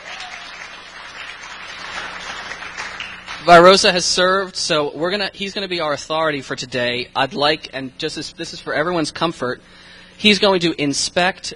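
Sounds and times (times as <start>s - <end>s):
audience cheering and applauding: 0.0s - 3.5s
speech: 3.4s - 11.5s.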